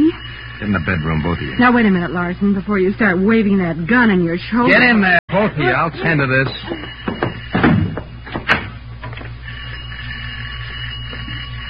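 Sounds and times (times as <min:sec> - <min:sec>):
low hum: 0:00.0 - 0:11.6
speech: 0:00.6 - 0:06.7
laughter: 0:05.3 - 0:07.1
firm knocks on a wooden door: 0:07.0 - 0:08.6.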